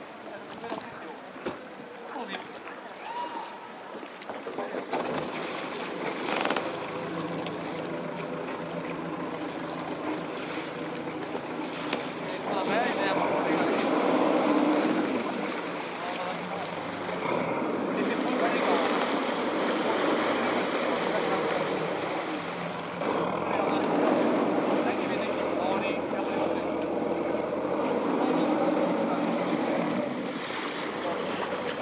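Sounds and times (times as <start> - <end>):
running water rushing and churning: 0.0 - 31.8.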